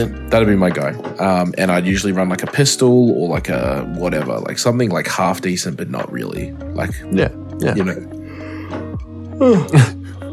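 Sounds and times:
speech: 0:00.0 - 0:08.2, 0:09.4 - 0:10.0
person yawning: 0:08.2 - 0:10.2.

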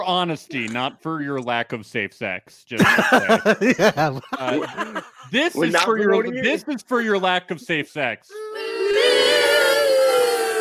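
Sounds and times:
speech: 0:00.0 - 0:09.3
laughter: 0:02.8 - 0:06.6
audience booing: 0:08.5 - 0:10.6.

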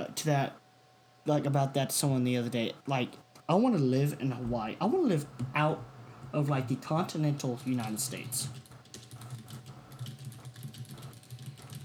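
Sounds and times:
steady low hum: 0:00.0 - 0:11.8
speech: 0:00.2 - 0:00.6, 0:01.2 - 0:08.7
hard typing on a keyboard: 0:07.4 - 0:11.8.

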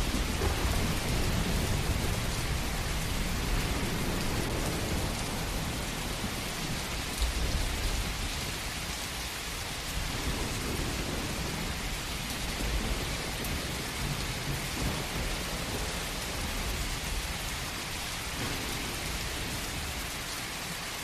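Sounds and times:
low rumble of thunder: 0:00.0 - 0:20.8
heavy rain: 0:00.0 - 0:21.0.

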